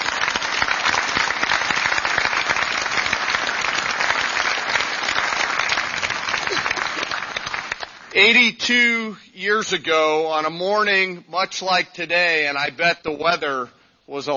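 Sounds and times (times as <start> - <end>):
audience applause: 0.0 - 8.1
speech: 8.2 - 14.3.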